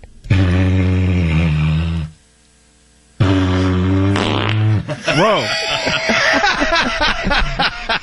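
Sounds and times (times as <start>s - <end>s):
didgeridoo drone: 0.2s - 2.2s, 3.2s - 5.0s
laughter: 4.9s - 8.0s
speech: 5.2s - 6.1s, 7.0s - 7.7s.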